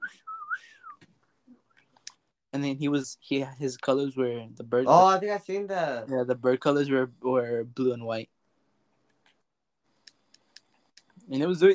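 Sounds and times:
person whistling a warbling tone imitating R2-D2's robotic beeps: 0:00.0 - 0:01.0
speech: 0:02.6 - 0:08.4, 0:11.3 - 0:11.7.

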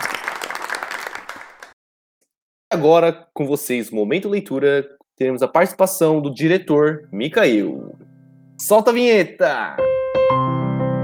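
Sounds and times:
audience applause: 0:00.0 - 0:01.8
speech: 0:02.7 - 0:08.0, 0:08.6 - 0:10.6.

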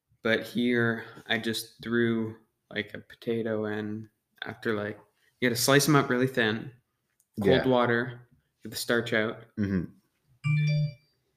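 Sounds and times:
speech: 0:00.2 - 0:06.8, 0:07.4 - 0:11.0
phone news notification alert tone: 0:10.4 - 0:11.1.

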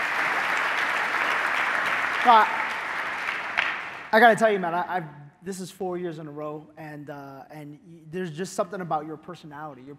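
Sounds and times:
audience applause: 0:00.0 - 0:04.4
speech: 0:02.2 - 0:02.6, 0:04.1 - 0:09.9.

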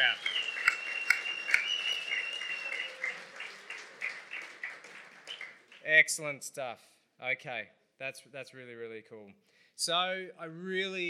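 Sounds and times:
audience applause: 0:00.0 - 0:05.9
speech: 0:05.9 - 0:11.0.

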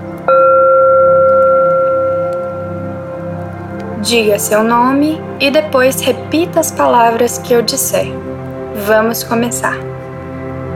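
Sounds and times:
bell striking: 0:00.3 - 0:03.4
speech: 0:04.0 - 0:09.9.

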